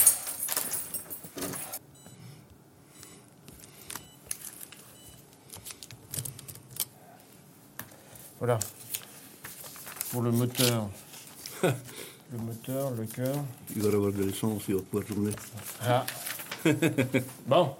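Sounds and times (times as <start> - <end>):
keys jangling on a ring while finding the right key: 0.0 - 1.8
speech: 8.4 - 8.8, 10.1 - 11.0, 11.6 - 17.7
laughter: 16.6 - 17.4.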